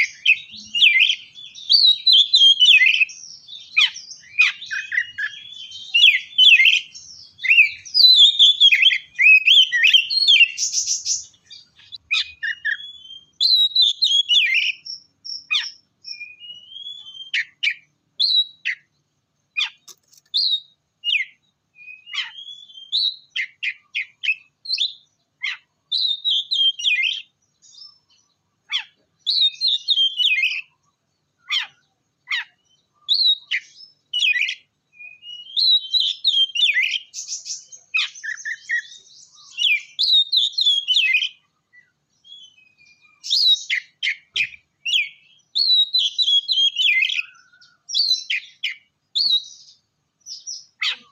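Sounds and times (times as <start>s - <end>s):
Oriental magpie-robin song of chirps and whistled phrases: 0.0s - 18.9s, 19.6s - 30.7s, 31.4s - 51.1s.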